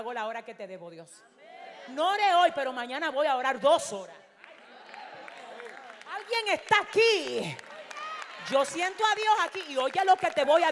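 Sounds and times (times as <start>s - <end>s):
speech: 0.1s - 4.2s, 6.2s - 7.7s, 8.4s - 10.6s
audience applause: 4.4s - 10.6s.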